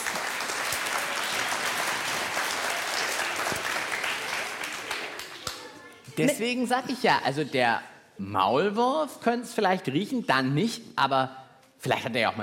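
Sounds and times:
audience applause: 0.0s - 5.9s
speech: 6.2s - 12.4s.

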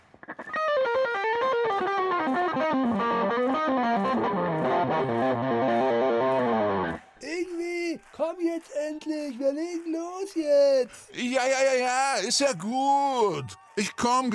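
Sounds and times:
fast distorted electric guitar notes: 0.0s - 7.0s
speech: 8.2s - 14.3s.

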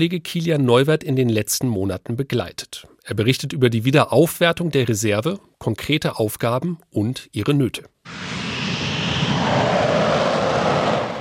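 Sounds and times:
speech: 0.0s - 8.4s
Eurofighter jets thundering over the runway into the grey sky: 8.1s - 11.2s.

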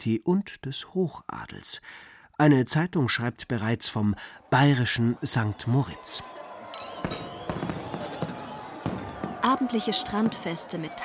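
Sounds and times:
speech: 0.0s - 6.4s, 7.0s - 7.8s, 9.5s - 11.0s
fireworks bursting: 6.9s - 11.0s.

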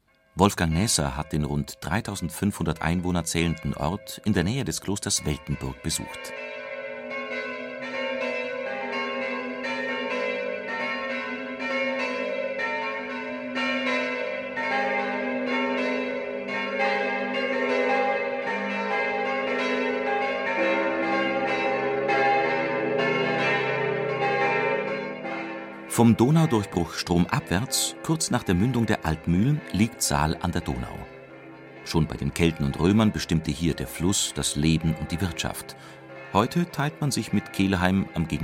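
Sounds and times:
midday church bells ringing in Saal an der Donau: 0.0s - 38.4s
speech: 0.4s - 6.6s, 26.0s - 31.2s, 31.9s - 38.4s.

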